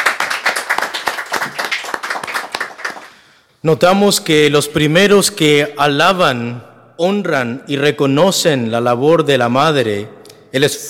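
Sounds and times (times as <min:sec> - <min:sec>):
people clapping: 0:00.0 - 0:03.4
speech: 0:03.6 - 0:10.8.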